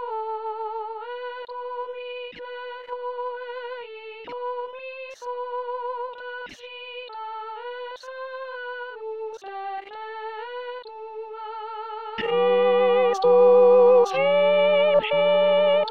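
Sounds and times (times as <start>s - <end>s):
tenors singing a chant: 12.0s - 15.8s.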